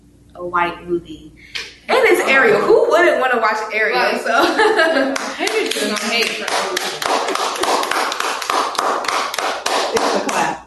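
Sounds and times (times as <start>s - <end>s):
speech: 0.4s - 7.4s
laughter: 4.3s - 8.0s, 9.8s - 10.6s
friends clapping and applauding: 4.9s - 10.6s.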